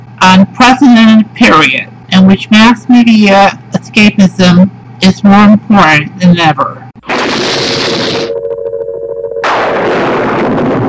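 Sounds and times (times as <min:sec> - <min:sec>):
speech: 0:00.2 - 0:06.8
thunderclap: 0:07.0 - 0:08.3, 0:09.4 - 0:10.8.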